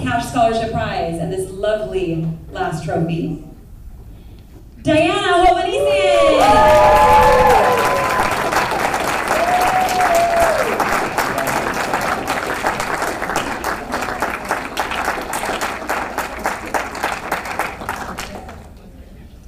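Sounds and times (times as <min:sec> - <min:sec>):
speech: 0:00.2 - 0:03.5, 0:04.8 - 0:07.2
audience applause and cheering: 0:06.0 - 0:18.7.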